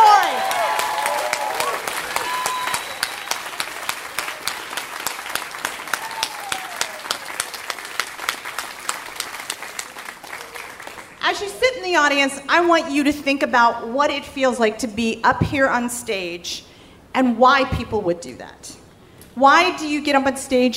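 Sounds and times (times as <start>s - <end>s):
audience applause after a live story performance: 0.0s - 11.2s
speech: 11.4s - 18.8s, 19.4s - 20.7s.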